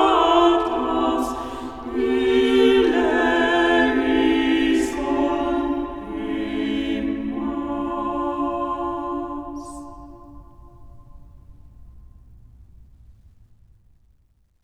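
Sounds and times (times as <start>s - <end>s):
choir singing: 0.0s - 11.3s.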